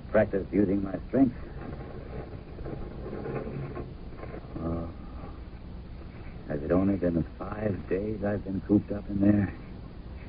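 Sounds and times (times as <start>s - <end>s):
speech: 0.1s - 1.8s, 6.6s - 9.6s
heavy barn door being dragged open, scraping, rattling and creaking: 1.4s - 4.7s.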